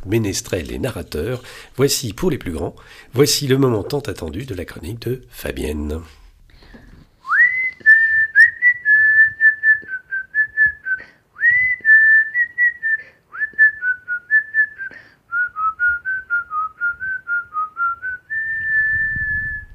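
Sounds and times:
speech: 0:00.0 - 0:06.2
person whistling a film melody: 0:07.3 - 0:19.7.

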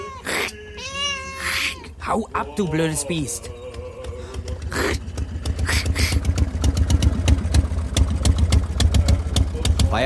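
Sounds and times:
car engine idling: 0:02.0 - 0:10.0
speech: 0:02.1 - 0:03.6
hissing bursts: 0:05.6 - 0:06.5.

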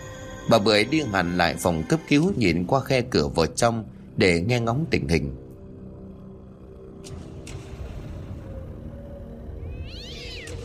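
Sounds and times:
speech: 0:00.5 - 0:05.4
cats meowing and caterwauling: 0:09.6 - 0:10.6.

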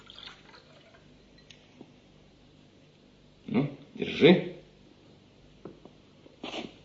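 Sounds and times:
drink trickling into a wine glass: 0:00.0 - 0:01.1
wine glass clinking: 0:00.0 - 0:01.6
low steady hiss: 0:00.0 - 0:06.8
speech: 0:04.2 - 0:04.5.

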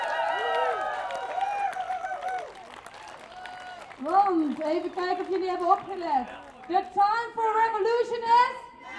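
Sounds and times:
audience applause: 0:00.0 - 0:06.8
speech: 0:04.0 - 0:08.6.

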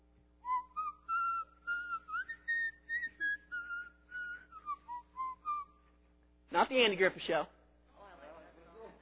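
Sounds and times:
faint steady low hum: 0:00.0 - 0:09.0
person whistling a lilting tune: 0:00.4 - 0:05.8
speech: 0:06.6 - 0:07.6.

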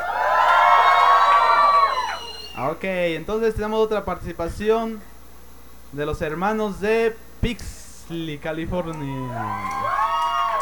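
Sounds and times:
young worshippers at a church youth revival camp in Tulare, California cheering: 0:00.0 - 0:02.6, 0:08.8 - 0:10.6
speech: 0:02.7 - 0:05.1, 0:05.9 - 0:09.9.

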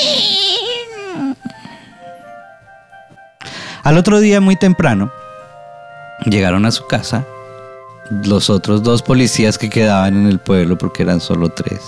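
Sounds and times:
pig squealing: 0:00.0 - 0:01.4
speech: 0:03.9 - 0:05.2, 0:06.2 - 0:07.4, 0:08.1 - 0:11.8.

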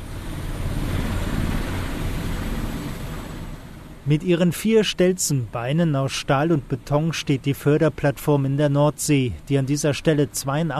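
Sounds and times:
Super Puma helicopter in flight from Stavanger airport to the Sleipner A platform: 0:00.0 - 0:08.5
speech: 0:04.1 - 0:10.7.

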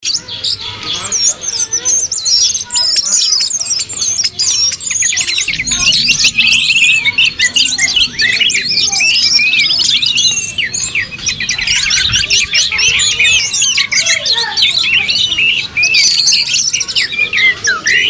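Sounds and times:
bird song: 0:00.0 - 0:18.0.

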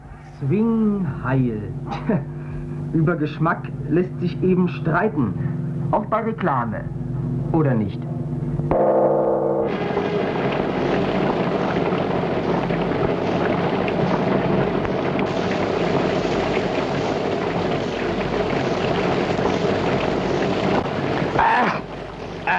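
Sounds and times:
speech: 0:00.4 - 0:02.3, 0:02.9 - 0:08.1
tonal snippet: 0:08.6 - 0:12.4
heavy rain pouring: 0:09.7 - 0:22.5.

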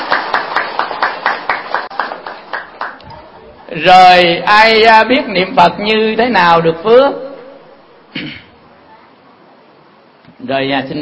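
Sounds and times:
audience at a Buddhist dharma talk clapping in unison: 0:00.0 - 0:03.0
speech: 0:03.8 - 0:07.2, 0:08.1 - 0:08.4, 0:10.4 - 0:11.0.

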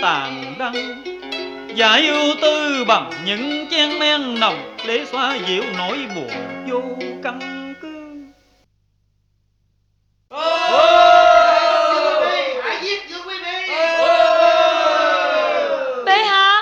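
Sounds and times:
speech: 0:00.0 - 0:01.2, 0:01.8 - 0:07.6
crowd shouting and cheering in a staged cải lương opera scene: 0:10.3 - 0:16.6.

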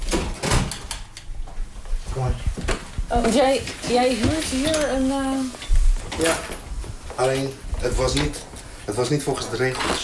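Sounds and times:
door being closed: 0:00.0 - 0:01.0
speech: 0:02.2 - 0:05.6, 0:06.2 - 0:06.6, 0:07.2 - 0:10.0.

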